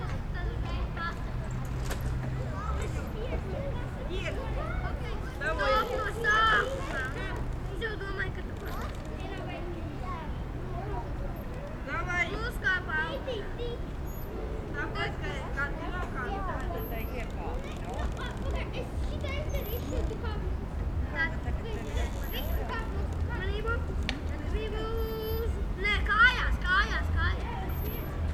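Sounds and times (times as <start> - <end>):
suburban playground ambience: 0.0 - 28.3.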